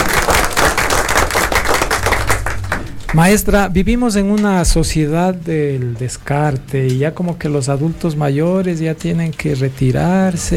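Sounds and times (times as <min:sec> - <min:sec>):
audience applause: 0:00.0 - 0:03.5
speech: 0:03.1 - 0:10.5.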